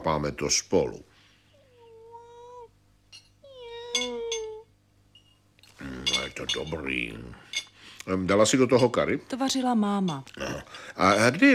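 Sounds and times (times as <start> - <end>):
speech: 0.1 - 1.1, 6.4 - 11.5
cat meowing: 3.4 - 4.7.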